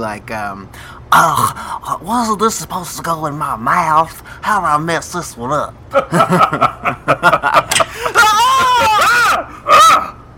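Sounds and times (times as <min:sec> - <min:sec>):
speech: 0:00.0 - 0:08.2
laughter: 0:05.9 - 0:09.4
person screaming at the doorstep: 0:07.9 - 0:10.2.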